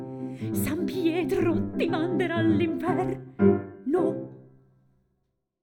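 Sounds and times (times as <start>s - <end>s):
voice: 0.6s - 3.2s, 3.9s - 4.2s.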